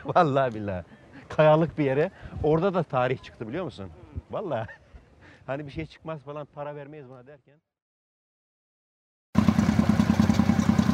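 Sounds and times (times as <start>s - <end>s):
speech: 0.0s - 4.8s, 5.5s - 7.7s
motorcycle engine idling at an industrial site with repair shops: 9.4s - 10.9s.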